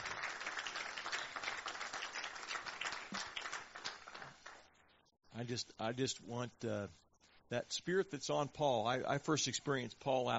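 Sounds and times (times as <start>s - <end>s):
audience clapping: 0.0s - 4.7s
speech: 5.4s - 10.3s.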